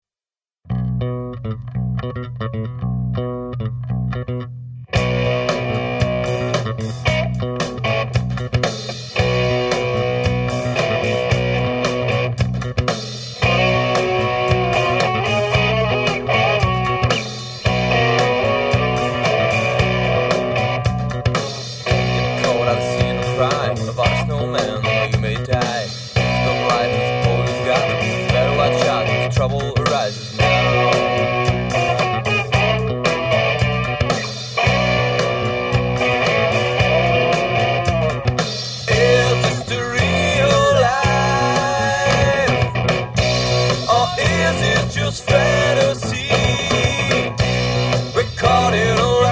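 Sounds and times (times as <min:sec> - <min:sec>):
film rock music: 0:00.7 - 0:49.2.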